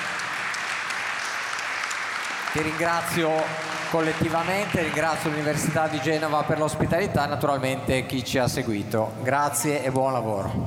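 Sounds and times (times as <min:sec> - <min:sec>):
conference audience applause at the University of Genoa: 0:00.0 - 0:06.7
speech: 0:02.5 - 0:10.6.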